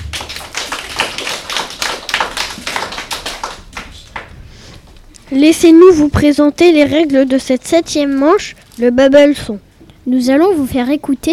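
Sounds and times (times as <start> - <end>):
children applauding: 0.0 - 4.3
speech: 5.3 - 11.3.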